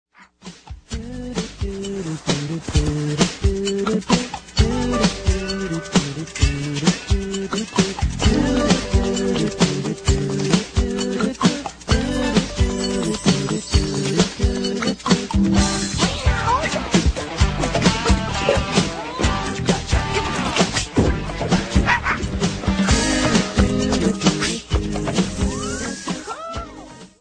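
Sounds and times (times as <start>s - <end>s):
theme song: 0.9s - 26.3s.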